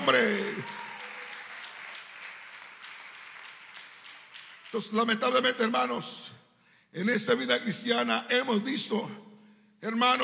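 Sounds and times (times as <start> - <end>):
audience applauding: 0.0 - 5.5
speech: 4.7 - 10.2.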